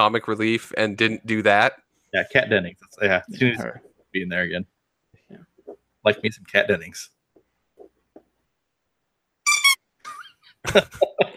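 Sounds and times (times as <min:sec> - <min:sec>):
speech: 0:00.0 - 0:04.7, 0:05.3 - 0:07.2, 0:10.6 - 0:11.3
squeaky toy shark squeaking: 0:09.5 - 0:09.8.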